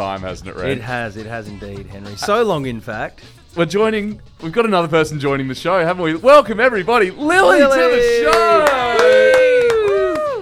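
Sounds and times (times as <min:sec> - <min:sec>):
speech: 0:00.0 - 0:09.4
single hand clap: 0:08.2 - 0:10.4.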